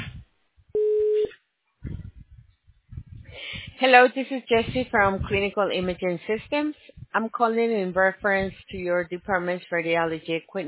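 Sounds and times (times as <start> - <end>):
patient scheduling line voicemail recording beep: 0.8 - 1.3
speech: 3.8 - 10.6.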